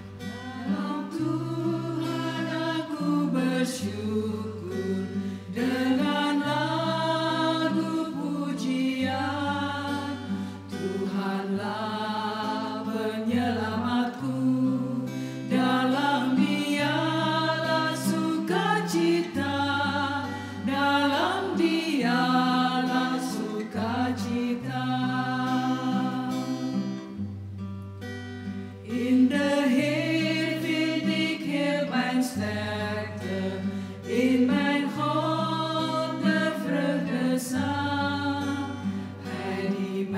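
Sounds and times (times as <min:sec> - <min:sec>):
Indonesian choir singing: 0:00.2 - 0:26.9, 0:28.9 - 0:40.1.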